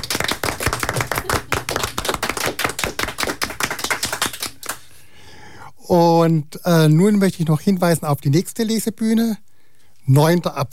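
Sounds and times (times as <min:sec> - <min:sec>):
audience applause: 0:00.0 - 0:04.8
speech: 0:05.9 - 0:09.5, 0:10.1 - 0:10.7.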